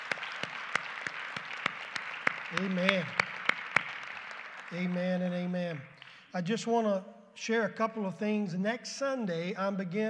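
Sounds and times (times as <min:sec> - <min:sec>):
audience applause: 0:00.0 - 0:05.4
speech: 0:02.5 - 0:03.2, 0:04.7 - 0:10.0.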